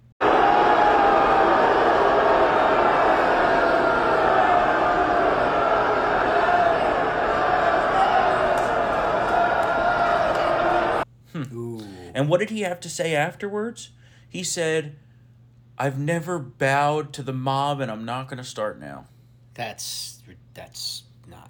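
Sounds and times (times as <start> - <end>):
crowd reaction at political convention: 0.2 - 11.0
speech: 12.2 - 15.1, 15.8 - 21.4.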